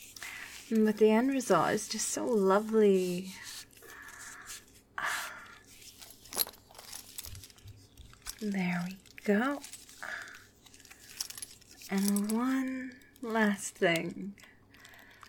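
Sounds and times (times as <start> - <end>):
speech: 0.7 - 3.5, 8.4 - 9.7, 11.9 - 14.5
buckles being fastened on straps: 5.8 - 8.4, 10.7 - 12.5.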